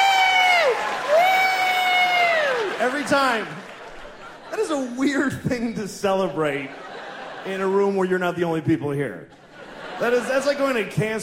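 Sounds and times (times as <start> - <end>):
audience applauding and cheering at a comedy show: 0.0 - 5.0
speech: 2.8 - 3.7, 4.5 - 9.4, 10.0 - 11.2
laughter: 2.9 - 8.3, 9.3 - 11.2.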